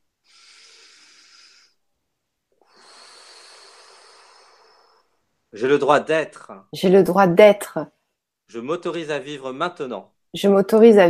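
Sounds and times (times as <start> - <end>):
deep breath: 0.1 - 5.5
speech: 5.5 - 11.0.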